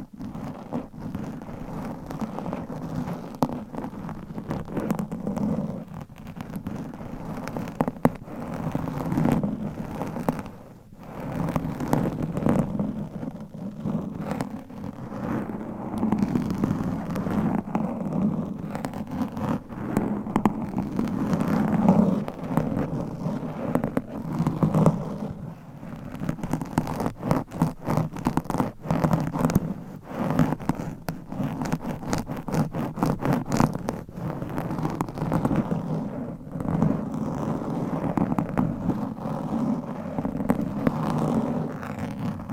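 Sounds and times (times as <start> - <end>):
microphone scratching with nails and mic covers: 0.0 - 42.5.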